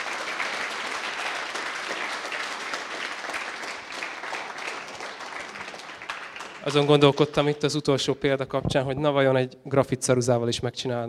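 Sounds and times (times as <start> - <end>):
audience applause for the speaker: 0.0 - 7.6
speech: 6.6 - 11.0.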